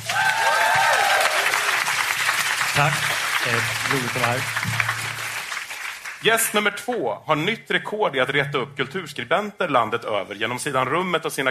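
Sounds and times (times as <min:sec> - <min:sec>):
faint whistles and cheers: 0:00.0 - 0:01.8
audience applause: 0:00.0 - 0:06.9
speech: 0:02.8 - 0:04.9, 0:06.2 - 0:11.4.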